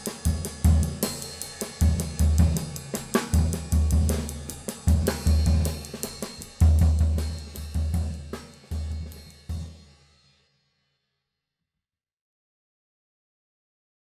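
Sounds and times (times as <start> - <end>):
Paiste 602 cymbal: 0.0 - 10.4.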